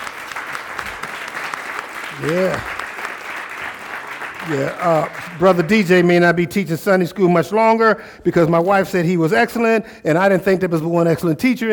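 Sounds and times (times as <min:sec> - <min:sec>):
audience applause: 0:00.0 - 0:06.1
speech: 0:02.2 - 0:02.8, 0:04.5 - 0:11.7.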